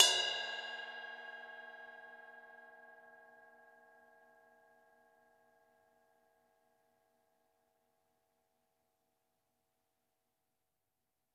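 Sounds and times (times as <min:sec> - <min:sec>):
ride drums and percussion: 0:00.0 - 0:01.7.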